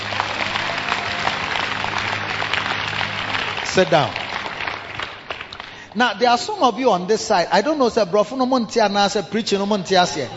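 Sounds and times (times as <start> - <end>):
audience clapping: 0.0 - 6.5
speech: 3.8 - 4.2, 6.0 - 10.3.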